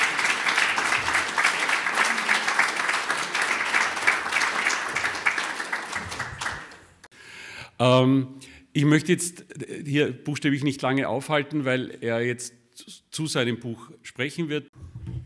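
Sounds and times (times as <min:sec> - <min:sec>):
audience applause: 0:00.0 - 0:07.1
speech: 0:07.8 - 0:14.7.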